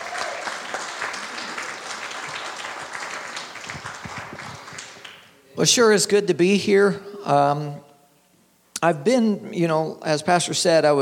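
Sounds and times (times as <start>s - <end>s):
audience clapping hands in praise: 0.0s - 5.3s
speech: 5.6s - 7.9s, 8.8s - 11.0s.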